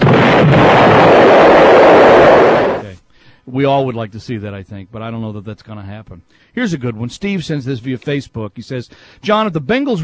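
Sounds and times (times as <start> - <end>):
explosion sound effect played on the radio: 0.0 - 2.9
speech: 3.6 - 10.0.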